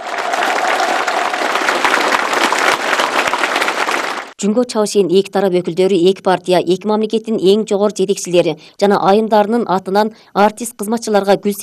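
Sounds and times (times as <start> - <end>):
applause for performing artists at a state gala performance: 0.0 - 4.4
speech: 4.4 - 11.6.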